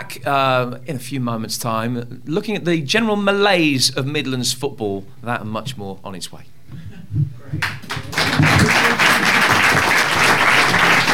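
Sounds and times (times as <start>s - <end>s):
speech: 0.0s - 7.8s
audience applause: 7.6s - 11.1s.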